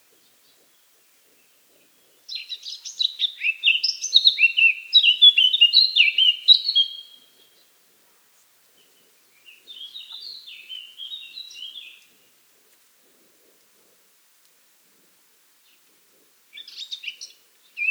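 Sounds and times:
Eurasian blackcap song: 0:00.0 - 0:07.8, 0:08.4 - 0:12.2, 0:16.5 - 0:17.8.

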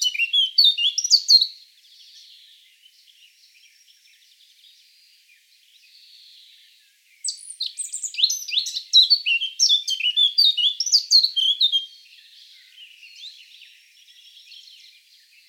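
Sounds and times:
Eurasian blackcap singing: 0:00.0 - 0:02.5, 0:07.2 - 0:15.4.

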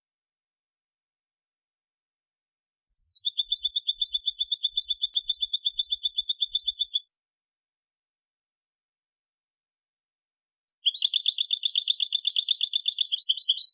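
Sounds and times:
European goldfinch twittering: 0:03.0 - 0:07.1, 0:10.8 - 0:13.7.

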